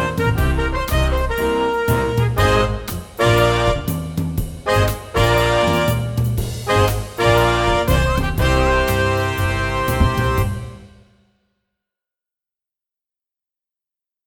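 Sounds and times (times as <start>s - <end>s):
closing groove music: 0.0s - 11.1s.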